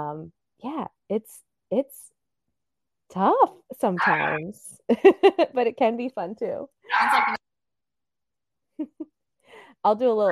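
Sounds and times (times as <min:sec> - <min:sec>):
speech: 0:00.0 - 0:02.1, 0:03.1 - 0:07.4, 0:09.8 - 0:10.3
dog growling while tussling over a toy: 0:04.0 - 0:04.4, 0:06.9 - 0:07.4.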